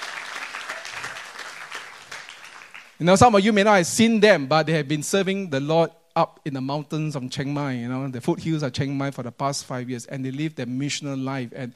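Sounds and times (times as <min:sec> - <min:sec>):
congregation clapping to welcome missionaries: 0:00.0 - 0:03.3
speech: 0:03.0 - 0:11.7.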